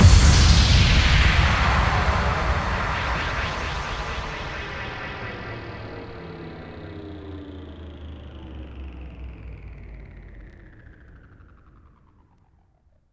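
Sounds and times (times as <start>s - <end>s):
bass drum FX kicks: 0.0s - 5.4s.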